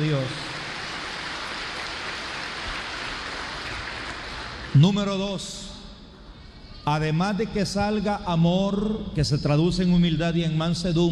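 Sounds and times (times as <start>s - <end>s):
speech: 0.0s - 0.6s, 4.8s - 5.6s, 6.9s - 11.1s
audience applauding: 0.0s - 4.9s.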